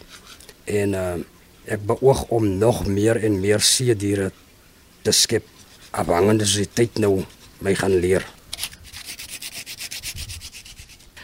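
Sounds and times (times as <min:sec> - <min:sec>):
speech: 0:00.7 - 0:08.4
sanding wooden carving: 0:05.4 - 0:11.1.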